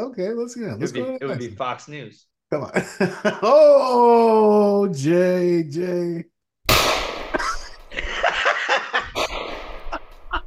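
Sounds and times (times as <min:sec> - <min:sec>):
speech: 0:00.0 - 0:06.3
laughter: 0:02.7 - 0:04.0, 0:07.4 - 0:09.3, 0:09.9 - 0:10.4
.22 gunshot: 0:06.7 - 0:08.0, 0:09.2 - 0:10.3.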